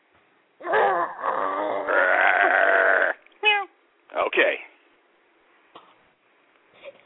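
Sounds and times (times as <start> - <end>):
gruff vocal burst: 0.6 - 3.2
person imitating a growl: 0.6 - 3.2
speech: 4.4 - 4.7.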